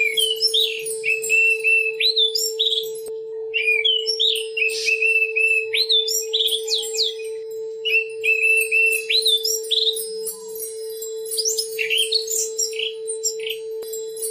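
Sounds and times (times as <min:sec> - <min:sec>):
Oriental magpie-robin song with clear whistled phrases: 0:00.0 - 0:14.2.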